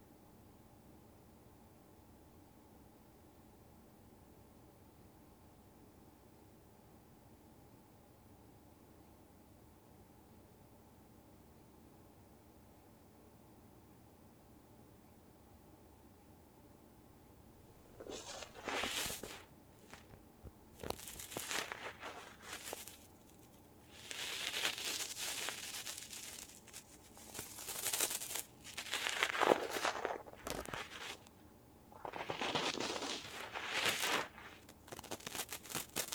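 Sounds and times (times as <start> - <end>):
left ear cleaning ASMR: 17.7 - 20.2, 20.8 - 31.3, 32.0 - 36.1.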